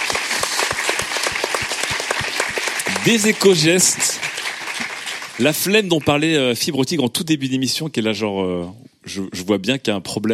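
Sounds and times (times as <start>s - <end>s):
audience applause: 0.0s - 6.6s
speech: 3.1s - 4.2s, 5.4s - 10.3s.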